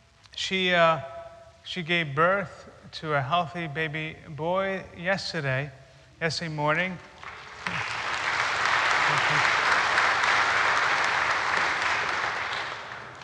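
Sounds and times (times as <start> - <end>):
speech: 0.5 - 1.1, 1.7 - 7.1
audience clapping: 7.1 - 13.2.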